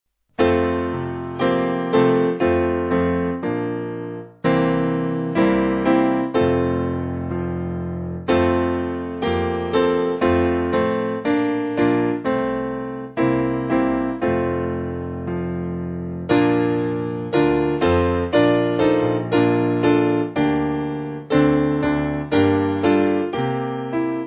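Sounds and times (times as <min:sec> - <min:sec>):
piano backing music for churches: 0:00.4 - 0:24.2.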